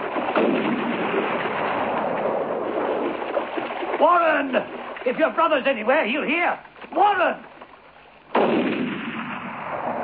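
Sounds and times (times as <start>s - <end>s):
rifle gunshot: 0.0s - 3.1s, 8.3s - 10.0s
speech: 4.0s - 7.5s.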